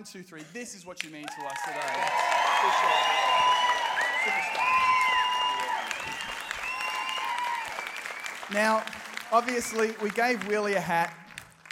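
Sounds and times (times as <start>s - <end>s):
speech: 0.0s - 5.0s, 8.5s - 11.2s
crowd clapping: 1.0s - 11.7s
people cheering and whooping: 1.3s - 8.3s.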